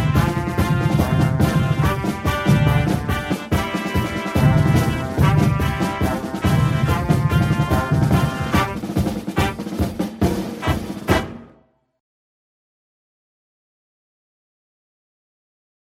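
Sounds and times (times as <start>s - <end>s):
military battle march music: 0.0s - 11.7s.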